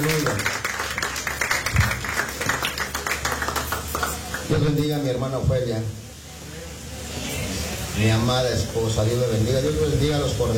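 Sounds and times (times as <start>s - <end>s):
audience clapping hands: 0.0s - 4.8s
speech: 4.5s - 6.0s, 8.0s - 10.5s.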